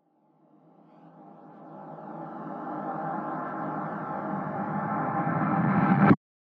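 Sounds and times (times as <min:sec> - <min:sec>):
riser sweep: 0:01.2 - 0:06.2.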